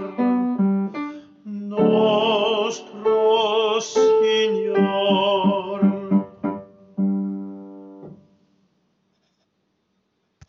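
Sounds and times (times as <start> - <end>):
alto singing: 0.0 - 7.7.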